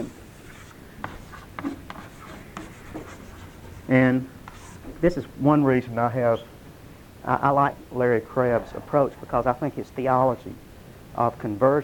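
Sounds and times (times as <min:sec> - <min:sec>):
pen scratching while drawing a little diagram: 0:00.0 - 0:03.9, 0:04.5 - 0:04.9
speech: 0:03.9 - 0:04.4, 0:05.0 - 0:06.5, 0:07.2 - 0:10.6, 0:11.2 - 0:11.8.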